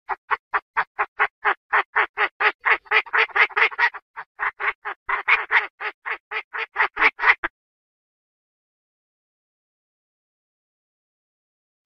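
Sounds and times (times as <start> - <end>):
Chinese francolin harsh calls: 0.1 - 7.5.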